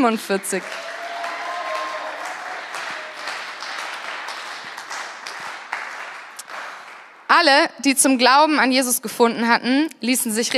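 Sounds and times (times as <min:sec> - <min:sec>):
speech: 0:00.0 - 0:00.9, 0:07.3 - 0:10.5
audience applause: 0:00.0 - 0:07.3.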